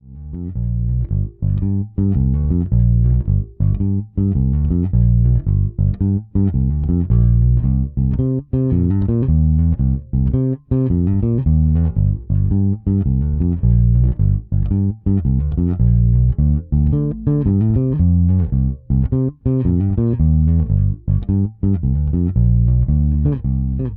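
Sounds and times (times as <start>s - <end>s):
Fender Little Overdrive electric guitar: 0.4s - 23.9s.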